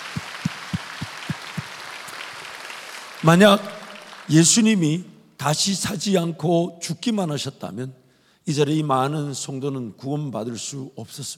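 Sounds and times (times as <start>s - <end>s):
audience applause: 0.0s - 4.6s
speech: 3.2s - 11.3s.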